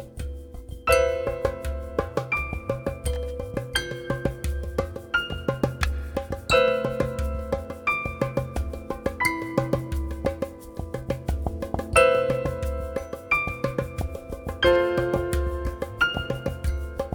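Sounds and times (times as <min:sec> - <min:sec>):
kalimba: 0:00.0 - 0:17.1
piano: 0:00.0 - 0:17.1
shaker: 0:00.0 - 0:17.1.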